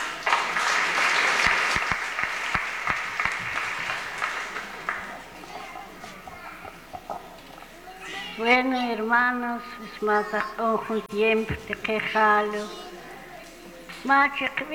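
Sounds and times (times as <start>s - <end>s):
crowd clapping: 0.0s - 7.8s, 11.6s - 14.7s
faint voices murmuring: 0.0s - 14.7s
laughter: 0.0s - 14.7s
speech: 8.4s - 12.8s, 14.0s - 14.7s.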